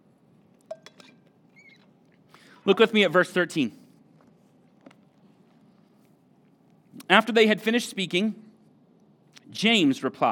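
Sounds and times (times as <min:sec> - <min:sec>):
glass clinking while taking a sip of water: 0:00.7 - 0:01.2
speech: 0:02.6 - 0:03.8, 0:07.1 - 0:08.4, 0:09.5 - 0:10.3.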